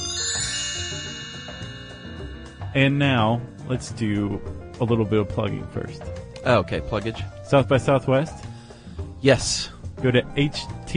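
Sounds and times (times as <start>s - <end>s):
listener mail chime jingle: 0.0s - 4.8s
speech: 2.8s - 8.4s, 9.2s - 10.9s.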